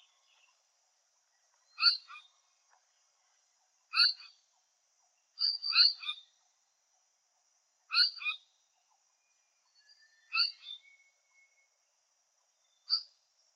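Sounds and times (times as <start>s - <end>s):
paradise flycatcher voice: 0.0s - 0.7s, 1.3s - 6.5s, 7.9s - 11.8s, 12.5s - 13.5s.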